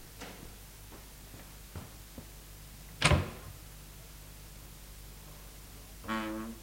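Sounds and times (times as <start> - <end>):
bedroom door creaking half open: 6.0 - 6.6.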